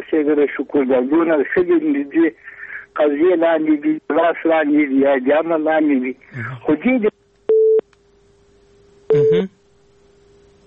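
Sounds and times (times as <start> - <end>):
speech: 0.1 - 7.1
telephone busy tone after dropped call: 7.5 - 7.8, 9.1 - 9.4.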